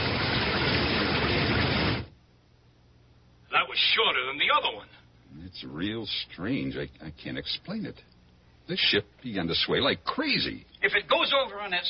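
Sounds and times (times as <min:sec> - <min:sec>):
rain pouring: 0:00.0 - 0:02.1
speech: 0:03.7 - 0:08.1, 0:08.7 - 0:11.8.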